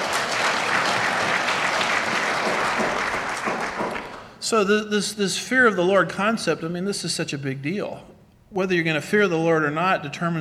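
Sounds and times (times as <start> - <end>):
person clapping: 0.0 - 4.3
speech: 4.5 - 10.3.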